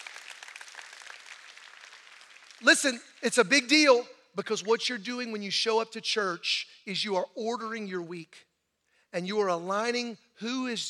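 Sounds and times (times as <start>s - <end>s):
audience clapping hands: 0.0s - 3.4s
speech: 2.6s - 8.5s, 9.1s - 10.8s.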